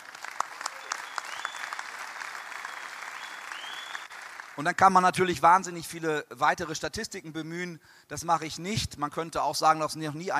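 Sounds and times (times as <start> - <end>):
crowd applauding: 0.0 - 4.7
whistles: 0.6 - 4.1
speech: 4.6 - 10.3.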